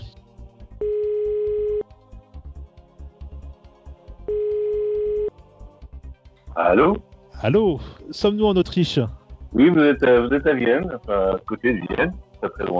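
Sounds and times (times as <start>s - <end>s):
low rhythmic music bed: 0.0s - 12.7s
outgoing call ringback tone: 0.8s - 1.8s, 4.3s - 5.3s
speech: 6.6s - 12.7s.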